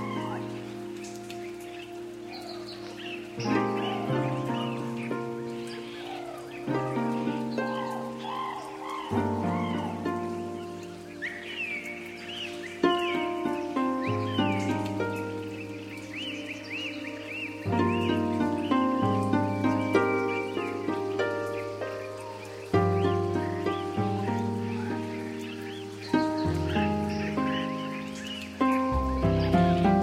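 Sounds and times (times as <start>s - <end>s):
jungle rainforest ambience: 0.0s - 30.0s.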